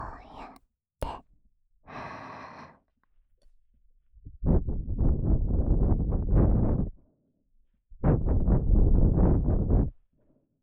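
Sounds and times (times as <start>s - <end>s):
person blowing air into left ear ASMR: 4.4s - 6.9s, 8.1s - 9.9s.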